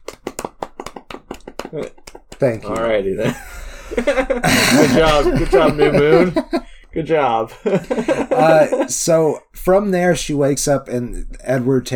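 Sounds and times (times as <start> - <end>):
hand clapping: 0.0 - 3.5
laughter: 0.8 - 6.8, 7.5 - 9.4
speech: 1.7 - 11.9.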